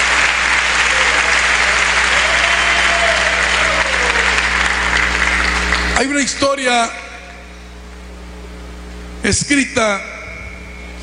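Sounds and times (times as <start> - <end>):
audience applauding: 0.0 - 6.3
speech: 6.0 - 7.0, 9.3 - 10.1.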